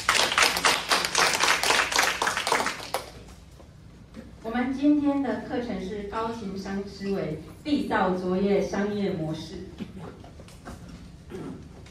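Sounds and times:
audience applause: 0.0 - 3.2
speech: 4.6 - 9.9.

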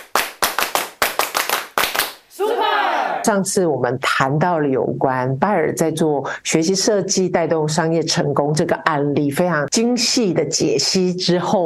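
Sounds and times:
rhythmic hand claps like a cheer routine: 0.0 - 3.0
brief voiced shout: 2.4 - 3.3
speech: 3.2 - 11.6.

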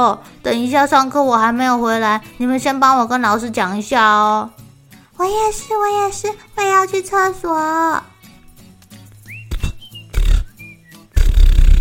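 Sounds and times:
speech: 0.0 - 4.6, 5.2 - 8.1
fart: 9.5 - 11.7.

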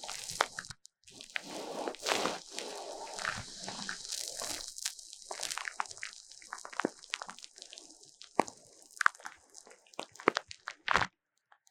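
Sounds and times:
bright hiss: 0.0 - 0.6, 1.2 - 9.0
foam squeezed and rubbed in an ear massage: 0.0 - 11.0.

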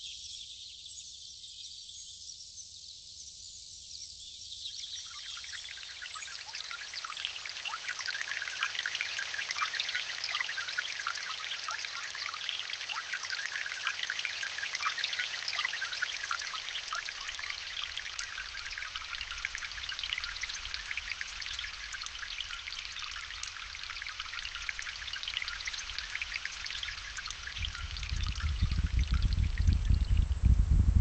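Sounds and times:
rainforest rain pattering: 5.4 - 30.1
deep rumble: 28.0 - 30.9.

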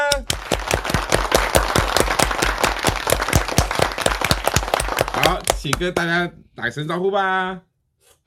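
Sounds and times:
clapping hands in welcome: 0.1 - 6.2
speech: 5.6 - 7.7.

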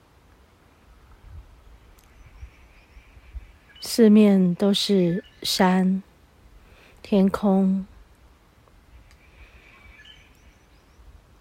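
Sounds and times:
birds singing outdoors: 1.8 - 6.0, 8.9 - 11.2
speech: 3.9 - 6.1, 7.1 - 7.9.

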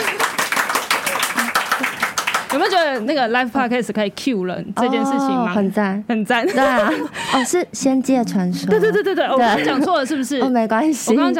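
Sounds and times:
audience applause: 0.0 - 2.8
speech: 2.6 - 11.3.

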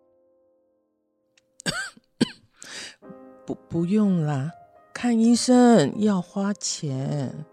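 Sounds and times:
elderly woman coughing: 1.6 - 2.6
speech: 3.5 - 7.5.

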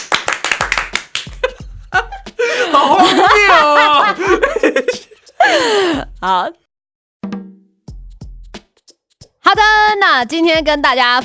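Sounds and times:
hand clapping: 0.0 - 1.6
laughter: 1.4 - 5.9
speech: 6.2 - 6.6, 9.5 - 11.2.

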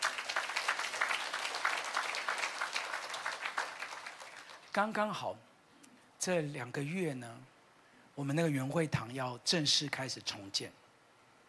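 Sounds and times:
audience clapping: 0.0 - 5.0
speech: 4.8 - 5.5, 6.2 - 7.5, 8.2 - 10.8.

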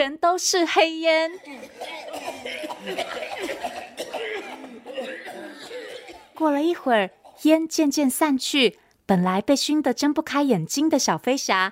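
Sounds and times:
speech: 0.0 - 5.8, 6.4 - 11.7
voice acting out choking coughs: 1.3 - 6.4, 7.1 - 7.5.

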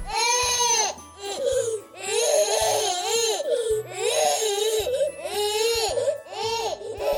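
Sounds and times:
baby wailing: 0.0 - 7.1.

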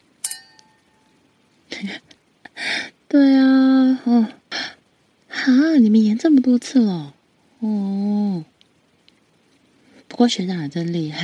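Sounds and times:
glasses clinking in a toast: 0.2 - 1.1
speech: 3.1 - 4.4, 5.5 - 8.5, 10.2 - 11.2.

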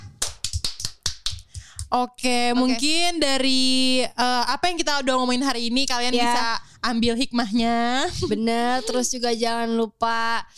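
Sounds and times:
hand clapping: 0.0 - 2.0
speech: 1.9 - 10.5.

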